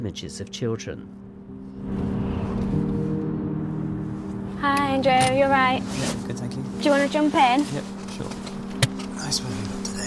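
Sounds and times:
speech: 0:00.0 - 0:02.1, 0:04.6 - 0:08.4, 0:09.3 - 0:09.8
car engine drone while driving: 0:01.5 - 0:10.0.

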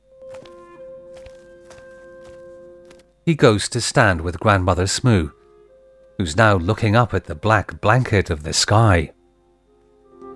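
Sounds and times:
footsteps stepping over a border of small rocks: 0:00.0 - 0:03.2
sustained musical tones: 0:00.0 - 0:10.3
speech: 0:03.2 - 0:05.4, 0:06.2 - 0:09.2.

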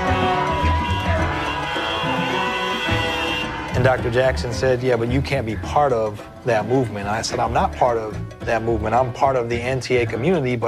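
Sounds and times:
cars honking: 0:00.0 - 0:04.2
street protest crowd: 0:00.0 - 0:04.5
speech: 0:03.8 - 0:10.6.

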